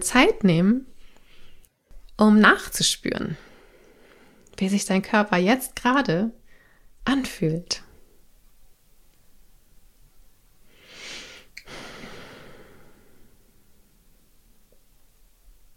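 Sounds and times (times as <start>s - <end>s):
speech: 0.0s - 0.9s, 2.2s - 3.5s, 4.6s - 6.4s, 7.0s - 7.8s
steady low hiss: 0.0s - 15.7s
deep spontaneous breath: 1.0s - 1.7s, 3.4s - 4.5s, 6.5s - 7.0s, 10.7s - 14.0s.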